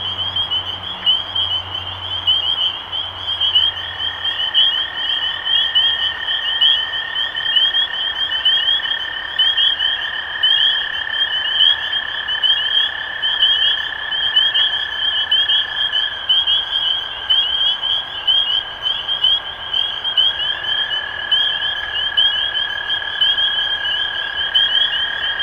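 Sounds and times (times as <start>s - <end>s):
spring peepers peeping: 0.0s - 25.4s.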